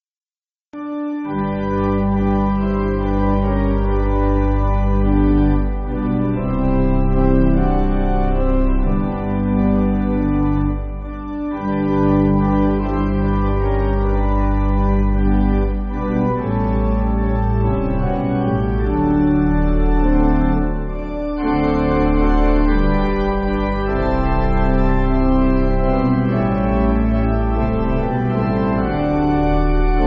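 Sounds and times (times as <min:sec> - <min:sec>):
pipe organ backing for churches: 0:00.8 - 0:30.0.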